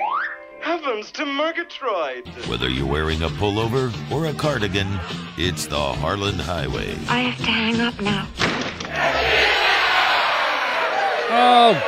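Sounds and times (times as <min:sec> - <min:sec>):
speech: 0:00.7 - 0:09.6, 0:11.3 - 0:11.8
crowd cheering: 0:08.8 - 0:11.8.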